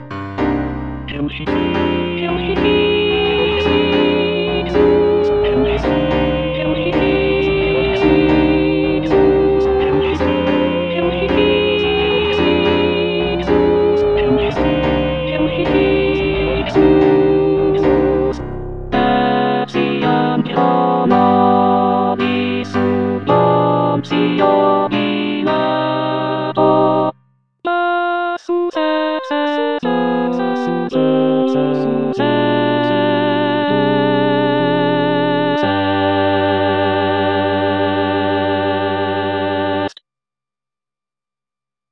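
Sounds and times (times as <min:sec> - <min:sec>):
alto singing a sacred choral piece: 0:00.5 - 0:27.1, 0:27.7 - 0:40.0.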